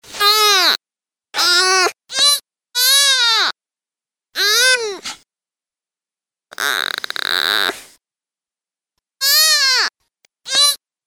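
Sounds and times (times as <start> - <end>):
deer fawn distress calls, loud harsh bleats: 1.4 - 3.5, 4.4 - 4.9, 6.5 - 7.8, 9.2 - 9.9, 10.5 - 11.0.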